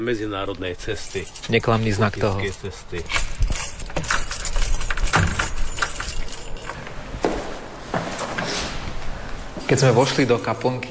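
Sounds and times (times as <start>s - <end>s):
speech: 0.0s - 3.4s, 9.7s - 10.8s
keys jangling: 0.8s - 6.9s, 9.6s - 10.8s
key working a chapel door lock: 2.2s - 6.8s.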